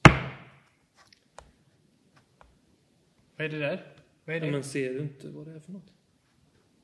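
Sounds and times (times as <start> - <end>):
hammer landing on a desk: 0.0 - 0.6
speech: 3.4 - 6.0.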